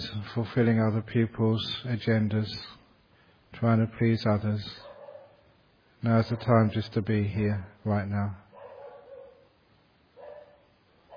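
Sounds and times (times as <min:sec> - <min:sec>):
speech: 0:00.4 - 0:02.8, 0:03.6 - 0:04.8, 0:06.0 - 0:08.4
dog barking, faint and muffled: 0:04.8 - 0:05.5, 0:06.3 - 0:06.6, 0:08.5 - 0:09.6, 0:10.2 - 0:11.1.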